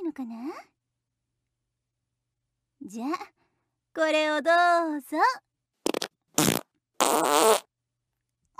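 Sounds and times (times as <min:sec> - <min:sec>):
speech: 0:00.2 - 0:00.7, 0:02.8 - 0:03.4, 0:04.0 - 0:05.4, 0:07.2 - 0:07.6
fart: 0:05.8 - 0:07.7.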